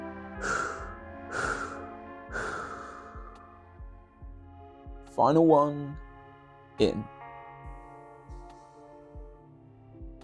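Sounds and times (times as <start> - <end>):
slow breathy exhales during a guided relaxation breathing exercise: 0.4 - 3.4
speech: 5.2 - 6.1, 6.8 - 7.2.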